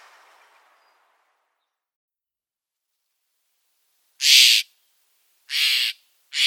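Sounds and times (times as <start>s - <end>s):
Steller's jay harsh calls: 4.2s - 4.7s, 5.5s - 6.4s.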